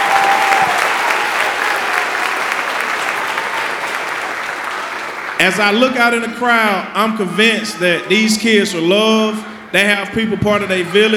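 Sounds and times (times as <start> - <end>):
audience applause: 0.0 - 6.2
speech: 5.4 - 11.1.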